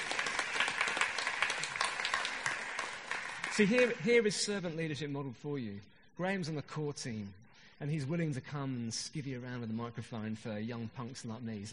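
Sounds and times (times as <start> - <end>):
audience clapping: 0.0 - 4.6
speech: 3.6 - 11.7.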